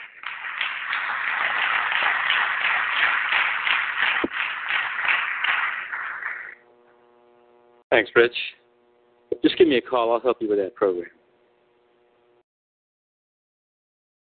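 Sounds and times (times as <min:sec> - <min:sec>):
audience applause: 0:00.0 - 0:06.6
speech: 0:07.9 - 0:08.6, 0:09.4 - 0:11.2.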